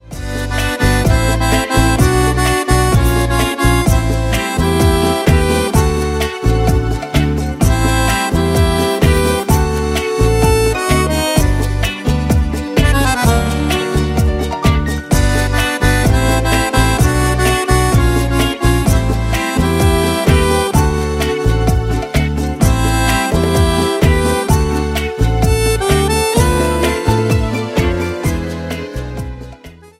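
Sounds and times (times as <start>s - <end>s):
ballad: 0.0s - 29.9s.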